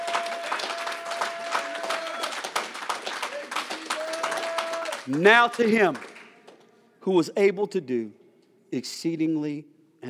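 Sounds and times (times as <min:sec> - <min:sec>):
audience hand clapping: 0:00.0 - 0:06.8
speech: 0:05.1 - 0:06.1, 0:07.0 - 0:10.0.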